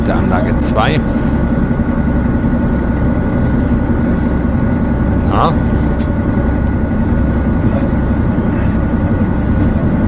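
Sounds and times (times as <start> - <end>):
engine drone: 0.0 - 10.0
high whirring: 0.0 - 10.0
speech: 0.1 - 1.5, 5.4 - 6.2.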